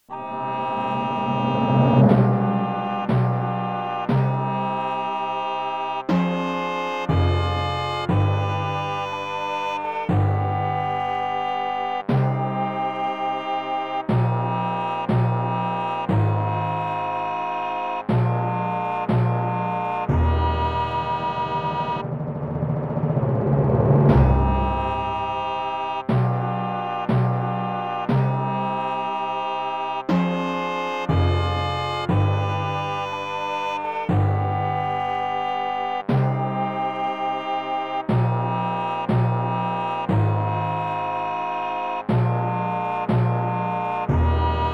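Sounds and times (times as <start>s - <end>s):
37 equal divisions of the octave microtonal music: 0.0s - 44.7s.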